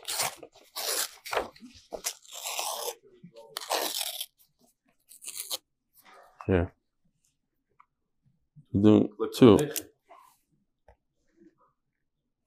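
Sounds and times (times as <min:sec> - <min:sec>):
paper being ripped up: 0:00.0 - 0:04.4, 0:05.1 - 0:05.6
speech: 0:06.5 - 0:06.8, 0:08.7 - 0:09.9.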